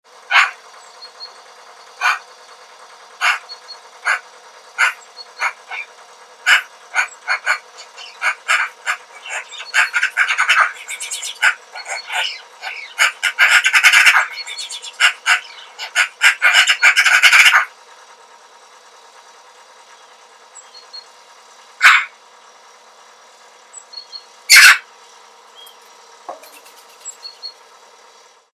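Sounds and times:
Pica pica: 2.0 - 2.3, 3.2 - 17.7, 21.8 - 22.2, 24.0 - 24.9.

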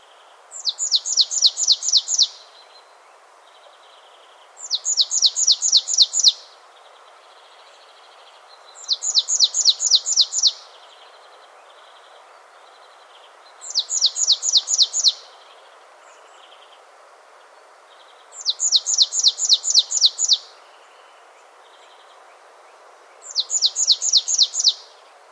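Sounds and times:
Poecile palustris marsh tit calling: 0.6 - 2.4, 4.6 - 6.4, 8.8 - 10.7, 13.6 - 15.2, 18.4 - 20.5, 23.2 - 24.9.

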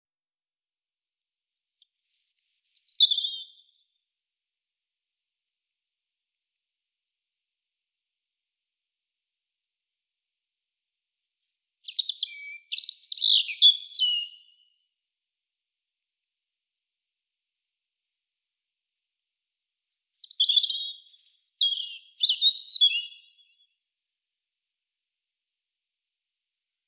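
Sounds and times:
European robin singing: 1.6 - 3.8, 11.2 - 14.7, 19.9 - 23.7.

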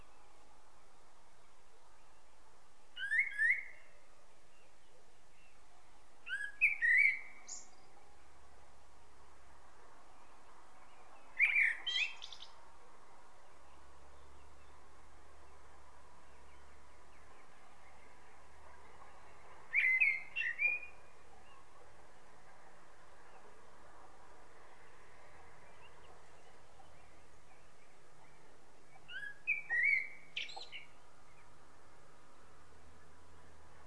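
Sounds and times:
background hiss: 0.0 - 33.8
common blackbird singing: 3.0 - 5.6, 6.2 - 8.1, 10.9 - 12.6, 16.2 - 21.8, 25.6 - 31.5.

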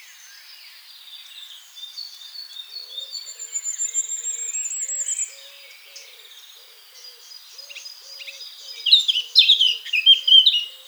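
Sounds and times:
Eurasian blackcap Sylvia atricapilla song bursts: 8.9 - 10.7.

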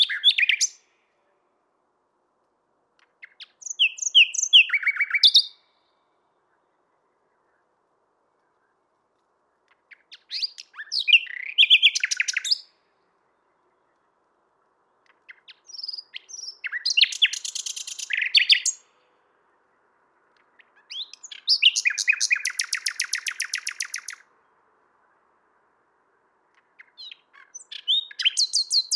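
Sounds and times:
common nightingale song: 0.0 - 28.9.

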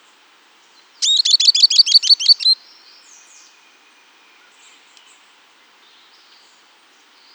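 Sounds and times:
bird call trill of buzzy high notes: 1.0 - 2.6.

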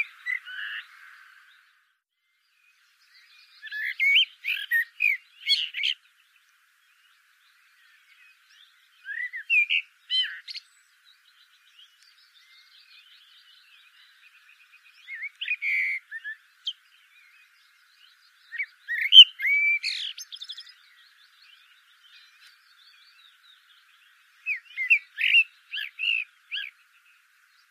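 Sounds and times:
Common blackbird song: 0.0 - 27.6.

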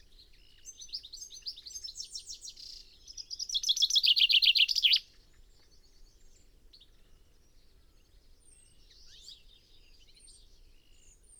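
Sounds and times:
common chaffinch song: 3.2 - 5.0.

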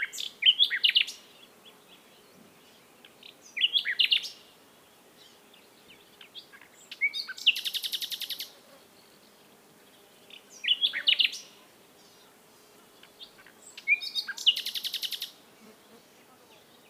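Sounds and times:
common nightingale Luscinia megarhynchos singing varied whistles and chirps: 0.0 - 2.0, 3.0 - 4.4, 5.2 - 9.1, 10.3 - 11.5, 13.0 - 15.4.

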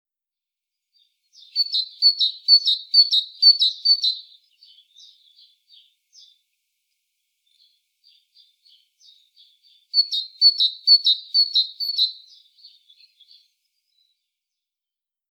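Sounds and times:
great tit song: 0.9 - 6.6, 7.4 - 14.6.

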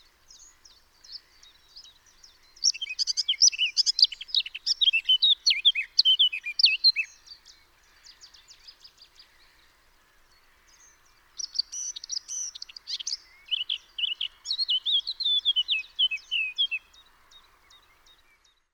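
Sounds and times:
Eurasian blackcap singing: 0.3 - 7.1, 11.4 - 17.0.

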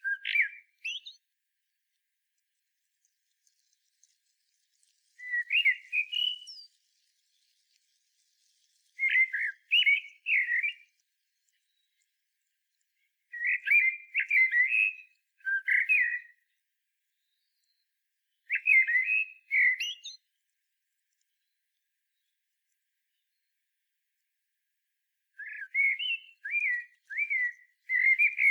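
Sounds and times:
Common blackbird whistling song: 0.0 - 1.3, 5.1 - 6.8, 8.8 - 11.0, 13.3 - 16.4, 18.4 - 20.2, 25.4 - 28.4.

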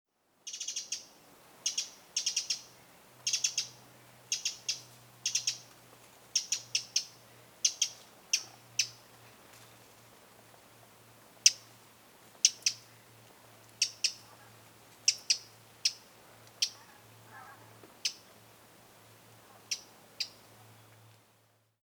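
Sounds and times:
Eurasian wren ticking calls: 0.4 - 5.7, 6.3 - 9.0, 11.4 - 11.7, 12.4 - 12.9, 13.7 - 14.3, 15.0 - 17.4, 18.0 - 18.3, 19.7 - 20.4.

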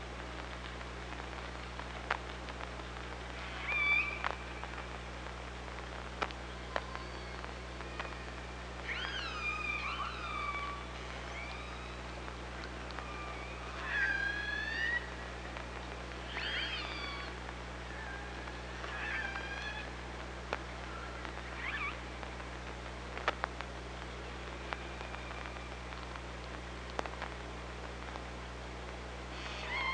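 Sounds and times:
constant low hum and hiss: 0.0 - 29.9
killer whale calls: 3.4 - 4.6, 6.6 - 15.2, 16.2 - 20.0, 20.8 - 22.1, 29.3 - 29.9.

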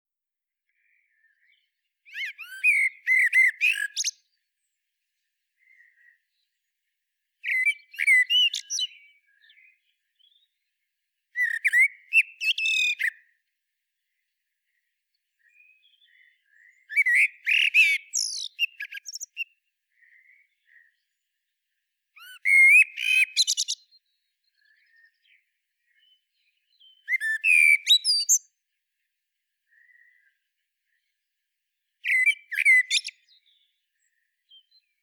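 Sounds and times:
common blackbird singing: 0.8 - 4.7, 7.4 - 10.7, 11.4 - 13.3, 15.4 - 21.2, 22.2 - 28.5, 32.0 - 35.0.

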